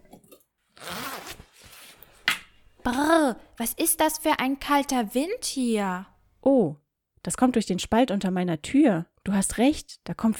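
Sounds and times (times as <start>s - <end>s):
outdoor clothing rustling as it is taken off: 0.0s - 2.2s
zipper pulling: 0.7s - 2.0s
speech: 2.8s - 10.3s.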